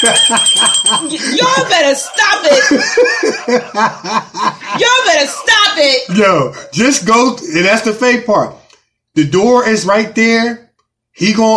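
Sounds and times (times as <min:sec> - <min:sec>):
bell ringing: 0:00.0 - 0:03.6
laughter: 0:00.0 - 0:06.0
speech: 0:00.0 - 0:08.6, 0:09.2 - 0:10.6, 0:11.2 - 0:11.5.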